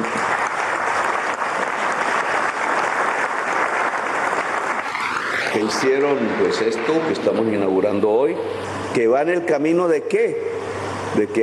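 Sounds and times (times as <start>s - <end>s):
crowd applauding: 0.0s - 5.9s
speech: 5.6s - 10.5s, 11.2s - 11.4s.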